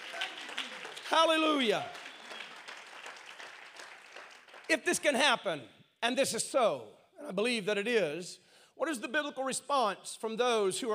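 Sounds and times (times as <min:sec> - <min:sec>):
audience clapping: 0:00.0 - 0:05.2
speech: 0:01.1 - 0:02.0, 0:04.7 - 0:10.9.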